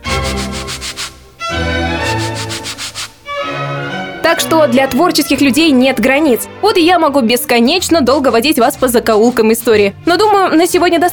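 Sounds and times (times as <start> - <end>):
sandpaper rubbed as a musical instrument: 0.0 - 3.4
speech: 4.4 - 11.1.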